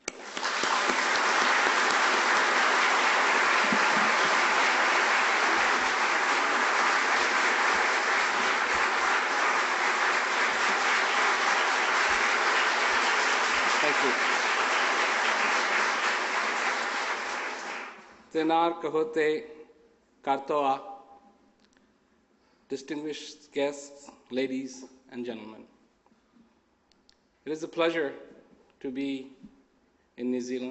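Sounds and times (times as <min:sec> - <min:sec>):
audience applause welcoming a visiting speaker in New Zealand: 0:00.0 - 0:18.2
speech: 0:18.4 - 0:19.6, 0:20.2 - 0:20.9, 0:22.7 - 0:25.7, 0:27.4 - 0:29.4, 0:30.2 - 0:30.6.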